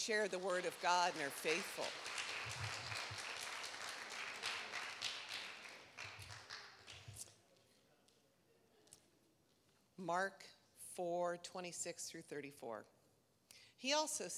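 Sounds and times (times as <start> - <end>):
speech: 0.0 - 2.8, 10.0 - 13.0, 13.8 - 14.3
audience applause: 0.0 - 7.2.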